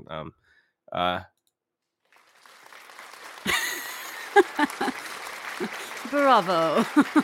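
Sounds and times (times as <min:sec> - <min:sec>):
speech: 0:00.0 - 0:01.4, 0:04.4 - 0:07.2
golf clap sound effect: 0:02.2 - 0:07.2
low crowd murmur: 0:03.6 - 0:07.2.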